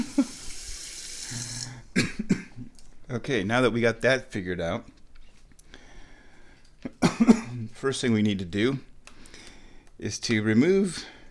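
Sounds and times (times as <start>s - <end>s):
tap water running into a cat's water cup: 0.0s - 1.8s
speech: 3.1s - 4.9s, 7.8s - 8.9s, 10.0s - 11.2s.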